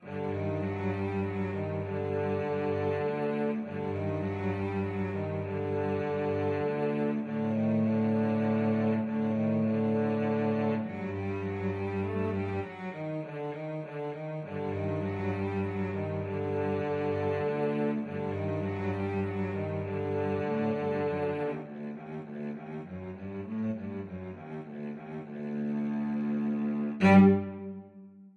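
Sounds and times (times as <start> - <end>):
cello duet: 0.0 - 28.3.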